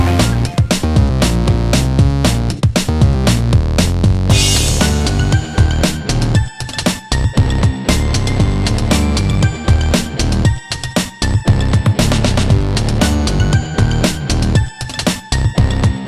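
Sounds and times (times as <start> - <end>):
funk indie game music: 0.0 - 16.0.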